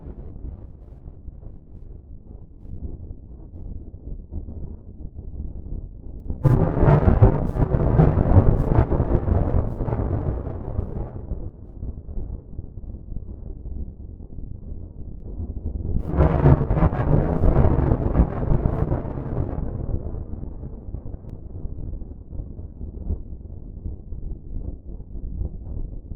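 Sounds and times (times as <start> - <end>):
thunder: 6.3 - 12.1, 15.9 - 23.1.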